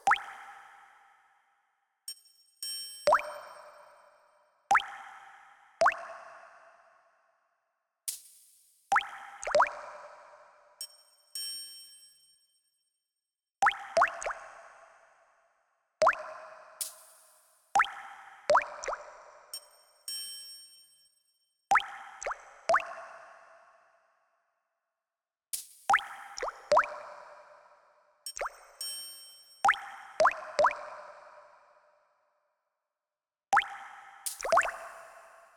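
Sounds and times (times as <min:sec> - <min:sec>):
water drops with reverb: 0:00.0 - 0:00.4, 0:03.1 - 0:03.6, 0:05.8 - 0:06.2, 0:08.9 - 0:09.9, 0:13.6 - 0:14.4, 0:16.0 - 0:16.3, 0:17.8 - 0:19.0, 0:21.7 - 0:23.0, 0:25.9 - 0:27.0, 0:28.3 - 0:28.8, 0:29.7 - 0:30.9, 0:33.6 - 0:35.1.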